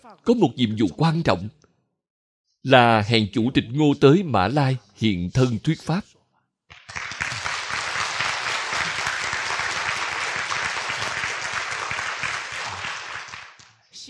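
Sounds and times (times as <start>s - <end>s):
speech: 0.1s - 1.6s, 2.6s - 6.1s
audience applause: 6.7s - 13.7s.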